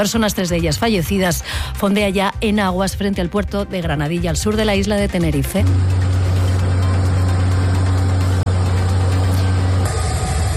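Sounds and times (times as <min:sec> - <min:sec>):
speech: 0:00.0 - 0:06.1
helicopters flying overhead: 0:04.5 - 0:10.5.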